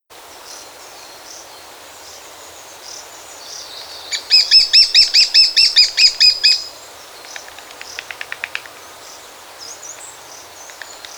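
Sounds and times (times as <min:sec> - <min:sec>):
high bird chirps: 0:03.8 - 0:06.7.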